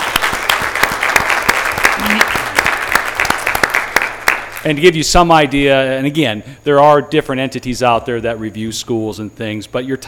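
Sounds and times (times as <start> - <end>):
audience applause: 0.0 - 4.8
speech: 4.6 - 10.0.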